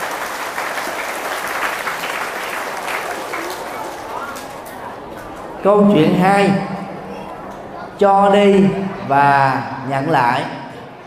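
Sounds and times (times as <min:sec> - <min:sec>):
audience applause: 0:00.0 - 0:05.6
speech: 0:05.6 - 0:06.8, 0:08.0 - 0:10.6.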